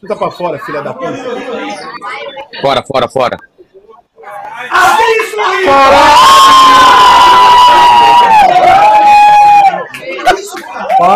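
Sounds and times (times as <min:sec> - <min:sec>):
speech: 0:00.0 - 0:03.5, 0:04.7 - 0:07.1
street crowd cheering for Argentina: 0:04.5 - 0:11.1
long drawn-out shouted cry: 0:04.6 - 0:10.0.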